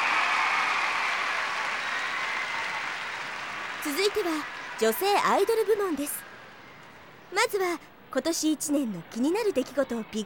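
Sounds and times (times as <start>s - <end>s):
applause from a large audience: 0.0s - 7.1s
speech: 3.8s - 6.3s, 7.3s - 10.2s.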